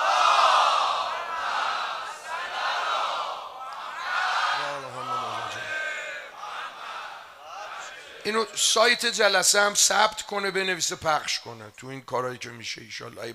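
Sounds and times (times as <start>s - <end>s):
large crowd loudly reciting salawat in unison at a religious gathering: 0.0s - 8.3s
speech: 8.2s - 13.3s.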